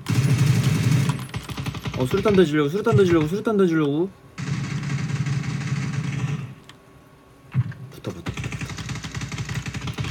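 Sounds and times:
automatic gunfire in a shooting video game: 0.0s - 2.4s, 4.4s - 6.6s, 8.1s - 10.0s
speech: 2.0s - 4.2s.

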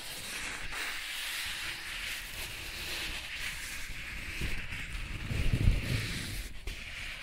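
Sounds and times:
soft tracing rubbing across a surface: 0.1s - 7.2s.

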